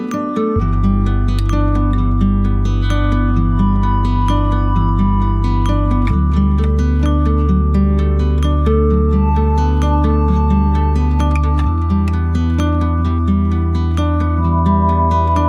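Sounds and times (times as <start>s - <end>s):
background music: 0.1s - 15.4s.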